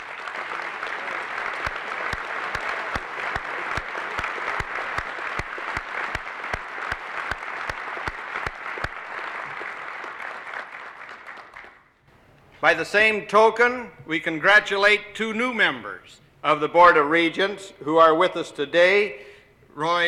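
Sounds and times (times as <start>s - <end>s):
audience applause: 0.0s - 12.0s
speech: 12.6s - 20.0s.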